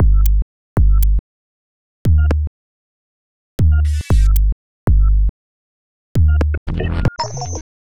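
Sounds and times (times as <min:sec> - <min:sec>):
percussive bass: 0:00.0 - 0:01.2, 0:02.1 - 0:02.5, 0:03.6 - 0:05.3, 0:06.2 - 0:07.2.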